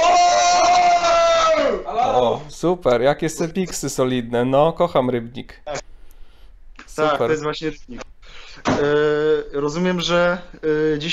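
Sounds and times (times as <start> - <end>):
group of friends shouting: 0.0 - 2.5
speech: 2.2 - 5.8, 7.0 - 11.1.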